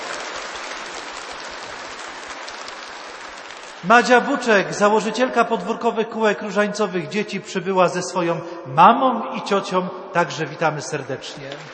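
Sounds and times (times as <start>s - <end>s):
audience applause: 0.0s - 5.2s
speech: 3.8s - 11.7s.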